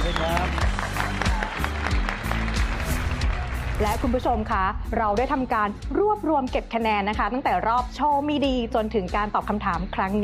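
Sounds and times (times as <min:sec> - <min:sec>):
audience applause: 0:00.0 - 0:04.3
speech: 0:03.8 - 0:10.2.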